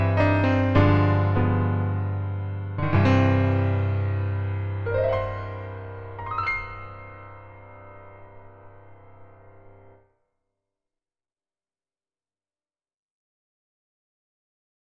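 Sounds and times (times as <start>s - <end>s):
grand piano note C5: 0.0s - 10.0s.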